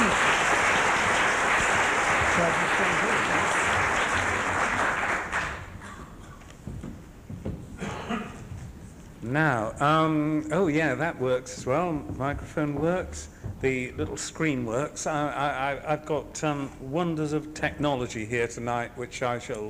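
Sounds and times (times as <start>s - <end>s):
audience applause welcoming Andrew Davies at an evening talk: 0.0s - 6.1s
speech: 9.3s - 19.6s.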